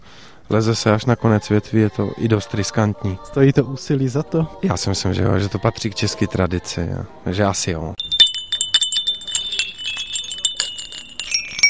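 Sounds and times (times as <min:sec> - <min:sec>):
speech: 0:00.5 - 0:08.1
ceramic bells ringing: 0:08.0 - 0:11.6.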